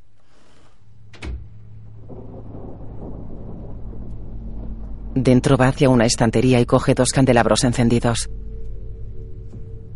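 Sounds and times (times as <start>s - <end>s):
bedroom door closing: 1.0s - 2.2s
speech: 5.2s - 8.4s.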